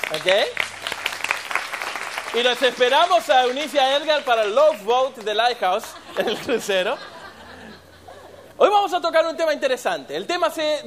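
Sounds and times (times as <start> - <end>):
audience applause: 0.0 - 4.9
speech: 0.1 - 0.6, 2.3 - 7.1, 8.6 - 10.8
laughter: 5.6 - 8.6.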